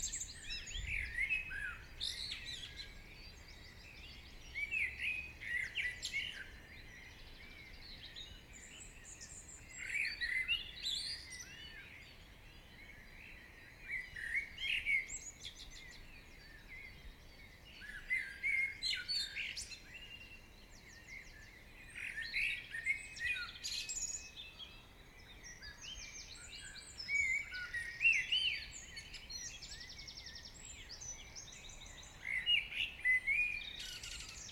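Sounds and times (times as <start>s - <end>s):
morning birdsong: 0.0s - 34.5s.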